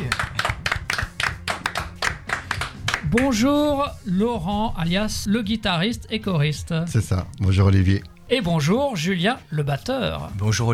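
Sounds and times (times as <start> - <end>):
audience applauding a tribute band: 0.0 - 3.0
speech: 3.1 - 10.7.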